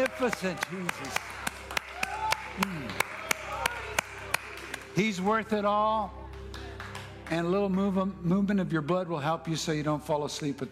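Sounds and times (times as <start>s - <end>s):
hands clapping: 0.0s - 8.1s
speech: 0.1s - 1.3s, 2.6s - 3.1s, 5.0s - 6.2s, 7.3s - 10.6s.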